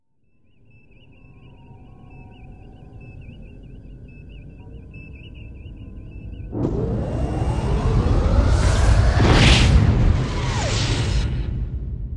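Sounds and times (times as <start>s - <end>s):
warp drive: 6.5s - 11.5s.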